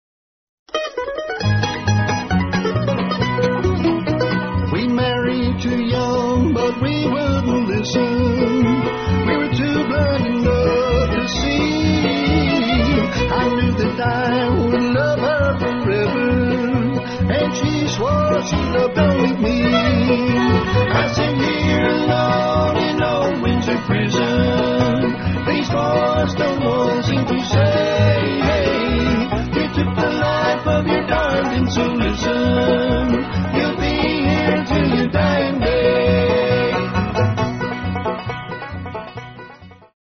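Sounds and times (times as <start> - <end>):
bluegrass band: 0.7 - 39.9.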